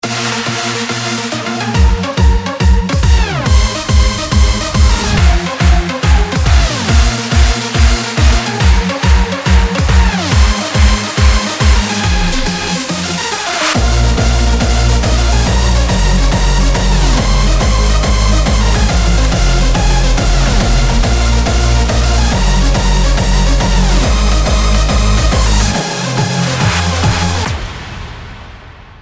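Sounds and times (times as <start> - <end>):
hard electro music: 0.0 - 28.5.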